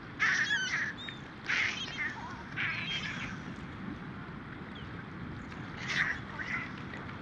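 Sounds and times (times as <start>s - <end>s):
first-winter and adult Mediterranean gulls giving nasal yelping calls: 0.2s - 3.7s, 5.6s - 7.0s.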